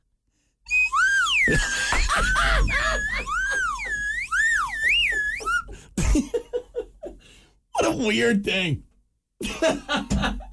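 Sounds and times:
slide whistle: 0.7 - 5.7
laughter: 1.4 - 7.2, 9.4 - 10.5
speech: 1.5 - 2.7, 8.0 - 8.9, 9.6 - 10.4.

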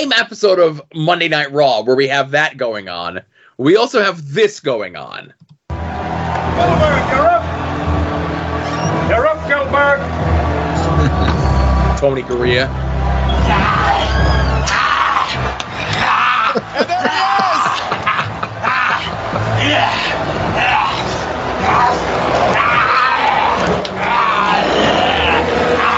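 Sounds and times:
speech: 0.0 - 5.5, 6.3 - 7.5, 9.1 - 10.3, 12.0 - 12.9
large wrestling crowd cheering wildly: 5.7 - 25.9
laughter: 10.6 - 11.7, 13.1 - 22.4.

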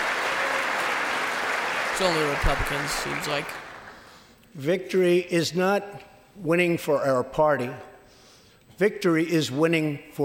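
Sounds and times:
applause in the chamber: 0.0 - 4.1
speech: 2.0 - 3.6, 4.6 - 7.9, 8.8 - 10.2.

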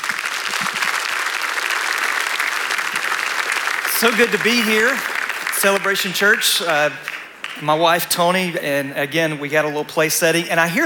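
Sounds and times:
audience applause: 0.0 - 7.6
speech: 4.0 - 10.8.

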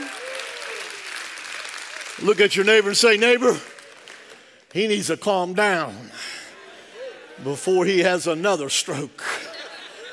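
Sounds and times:
audience hand clapping: 0.0 - 5.2
speech: 2.2 - 3.8, 4.7 - 6.3, 7.4 - 9.4
laughter: 5.6 - 10.1.

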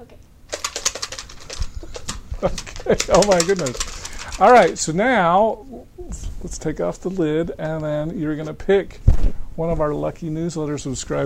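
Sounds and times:
paper name slips shaken in a cup for a prize draw: 0.5 - 4.9
speech: 2.4 - 11.2.

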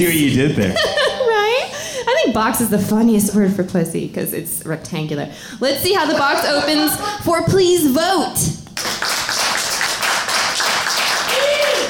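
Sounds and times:
speech: 0.0 - 1.0, 2.3 - 8.6
laughter: 0.0 - 1.8, 5.9 - 7.2
polite audience applause at a live comedy pitch show: 8.7 - 11.8
person whooping: 11.3 - 11.8.

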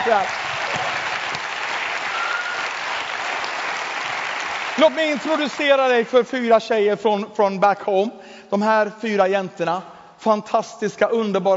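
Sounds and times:
audience applause: 0.0 - 6.4
speech: 0.1 - 1.0, 4.8 - 11.5.

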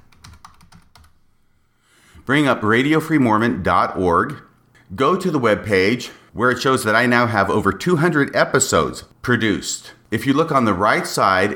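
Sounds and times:
typing on a computer keyboard: 0.0 - 1.2
speech: 2.3 - 11.5.

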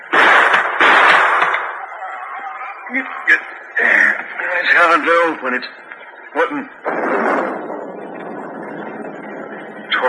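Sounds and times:
gunshot shooting the lock off a chest: 0.0 - 1.8, 6.8 - 8.0
speech: 2.9 - 4.0, 4.6 - 7.3.

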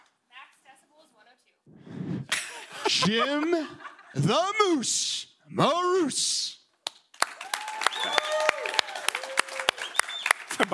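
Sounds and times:
laughter: 2.3 - 4.6, 10.5 - 10.7
speech: 2.9 - 6.6
small crowd clapping: 6.8 - 10.7
voices whooping and cheering: 7.4 - 10.3.

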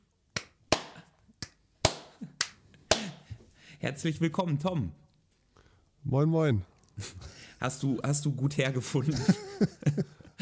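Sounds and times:
lone person clapping: 0.4 - 3.3
speech: 3.8 - 5.0, 6.1 - 10.2
laughter: 9.0 - 10.4.

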